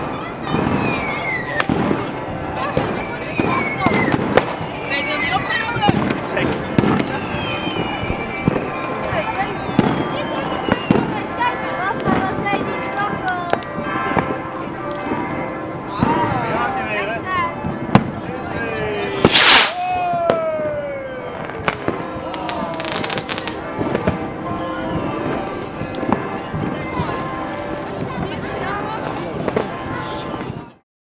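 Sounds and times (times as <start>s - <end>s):
new year celebration in Geldrop: 0.0s - 30.8s.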